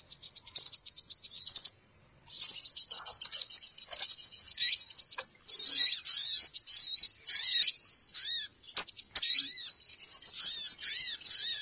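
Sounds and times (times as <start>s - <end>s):
birds chattering in a dense chorus: 0.0s - 11.5s.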